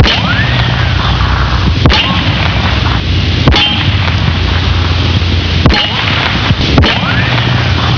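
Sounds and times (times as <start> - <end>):
pistol gunshots: 0.0 - 0.9, 1.8 - 4.9, 5.6 - 7.9.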